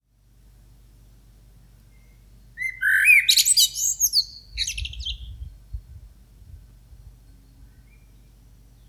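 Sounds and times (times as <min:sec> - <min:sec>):
blackbird song with fluted notes and twittering in the morning: 0:01.8 - 0:05.7, 0:07.2 - 0:08.8.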